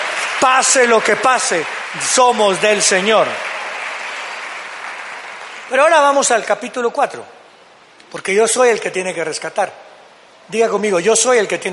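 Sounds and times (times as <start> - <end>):
loud applause: 0.0 - 6.5
speech: 0.4 - 3.5, 5.7 - 7.4, 8.1 - 9.8, 10.5 - 11.7.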